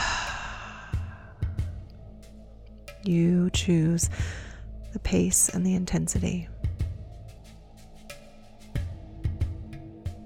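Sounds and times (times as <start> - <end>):
long soft airy exhale through the mouth in guided breathing: 0.0 - 1.4
speech: 3.0 - 4.4, 5.0 - 6.5.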